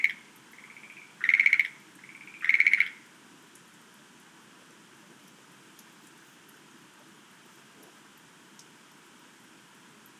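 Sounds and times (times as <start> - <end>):
Schlegel's green tree frog clicking rattle: 0.0 - 3.0.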